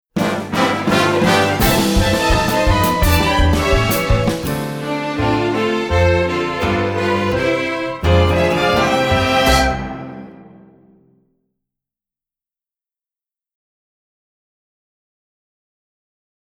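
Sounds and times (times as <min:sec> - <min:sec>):
playoff fanfare: 0:00.2 - 0:10.8.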